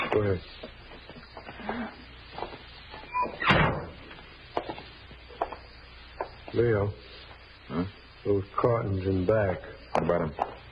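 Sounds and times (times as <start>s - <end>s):
speech: 0.1s - 0.7s, 6.5s - 7.1s, 7.8s - 10.5s
side door rattling and creaking: 3.1s - 3.9s.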